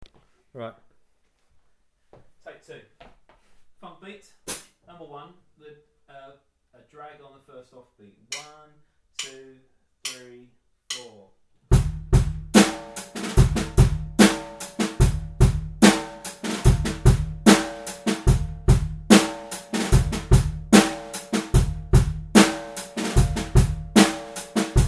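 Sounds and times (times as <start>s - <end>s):
funk drum beat with drags: 11.7s - 24.8s.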